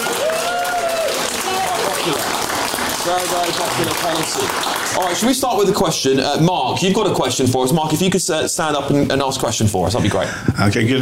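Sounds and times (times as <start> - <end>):
voices calling out and cheering: 0.0 - 5.7
audience applause in the room: 0.0 - 5.9
speech: 3.1 - 11.0.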